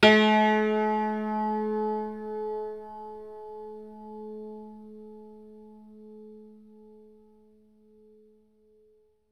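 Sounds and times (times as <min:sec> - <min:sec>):
hammered dulcimer: 0:00.0 - 0:02.6.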